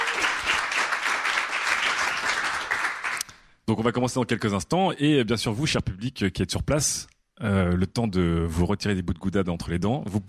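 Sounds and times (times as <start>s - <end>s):
audience applause: 0.0s - 3.2s
speech: 3.7s - 10.2s.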